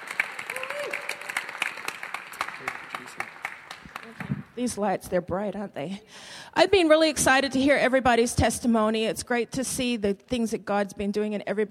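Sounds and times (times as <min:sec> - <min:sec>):
crowd applauding: 0:00.0 - 0:04.5
vocal whoop: 0:00.5 - 0:01.3
speech: 0:04.6 - 0:11.6.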